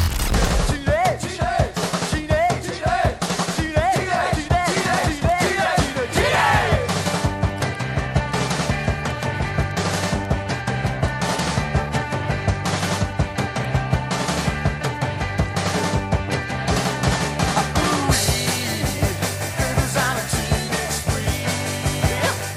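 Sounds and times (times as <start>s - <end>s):
stepping bass line: 0.0s - 1.2s, 4.8s - 22.5s
driving drums with rapid rattling snare fills: 0.0s - 22.5s
brief vocal-like bit: 0.3s - 7.2s, 17.5s - 22.5s.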